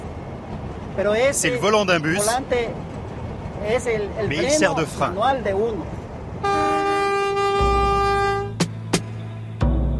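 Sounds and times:
rustic train running: 0:00.0 - 0:09.9
speech: 0:01.0 - 0:02.9, 0:03.6 - 0:06.0
rustic train horn blast: 0:06.4 - 0:08.6.

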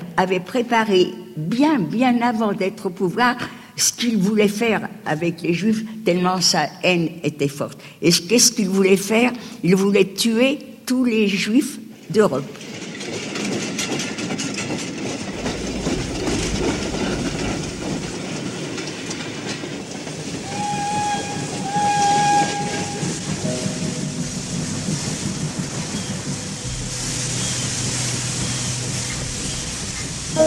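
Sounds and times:
speech: 0:00.2 - 0:12.7
steam train chugging: 0:12.6 - 0:30.4
steam train whistle: 0:20.4 - 0:24.4, 0:26.6 - 0:30.4.

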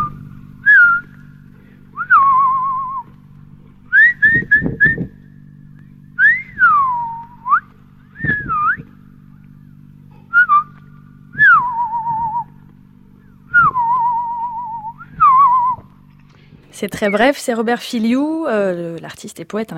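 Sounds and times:
man whistling in imitation of birdsong: 0:00.0 - 0:01.3, 0:02.0 - 0:03.1, 0:03.9 - 0:05.2, 0:06.1 - 0:09.0, 0:10.3 - 0:12.6, 0:13.2 - 0:16.0
low hum: 0:00.0 - 0:19.7
speech: 0:16.8 - 0:19.7.

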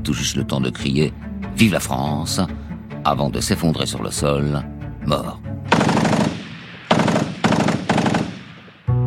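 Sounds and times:
speech: 0:00.0 - 0:05.5
submachine gun firing: 0:05.7 - 0:08.9.

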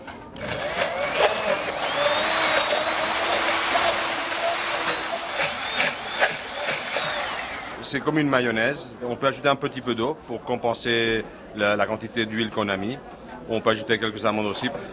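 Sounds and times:
hand blender mixing thick sauce: 0:00.4 - 0:07.8
speech: 0:07.9 - 0:14.9.

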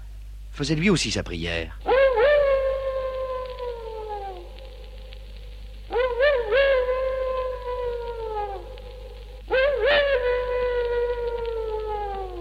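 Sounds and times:
speech: 0:00.6 - 0:01.9
low steady hum: 0:01.6 - 0:12.3
dog howling in the distant countryside: 0:01.8 - 0:05.1, 0:05.9 - 0:12.3.

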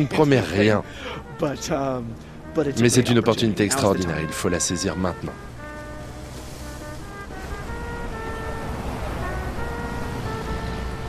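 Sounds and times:
speech: 0:00.0 - 0:05.5
sea surf along the Malecón seafront boulevard in Havana: 0:02.9 - 0:11.0.

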